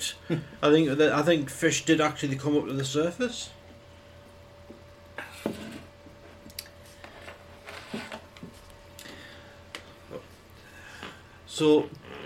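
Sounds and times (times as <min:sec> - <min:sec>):
speech: 0:00.3 - 0:03.6, 0:11.6 - 0:12.0
squeaky chair creaking: 0:05.2 - 0:05.9, 0:07.0 - 0:08.7, 0:11.9 - 0:12.2.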